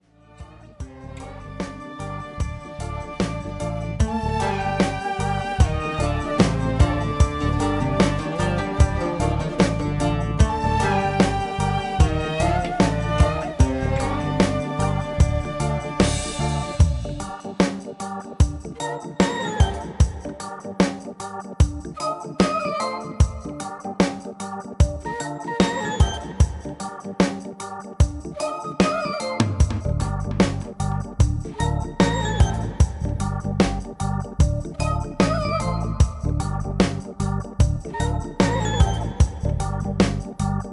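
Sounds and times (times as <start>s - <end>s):
Sharqi reggae music: 0.7s - 40.7s.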